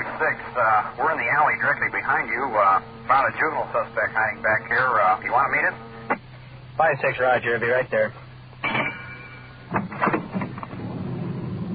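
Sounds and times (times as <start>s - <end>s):
police car engine droning while turning into an alley: 0.0s - 11.7s
thin high whine: 0.0s - 11.7s
speech: 0.2s - 6.2s, 6.8s - 8.2s
clunks and rattles: 8.6s - 11.7s.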